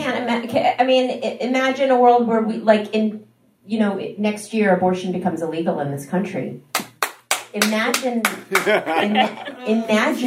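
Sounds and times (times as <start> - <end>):
speech: 0.2 - 6.7, 7.5 - 10.2
man clapping: 6.7 - 8.9
laughter: 8.3 - 10.2.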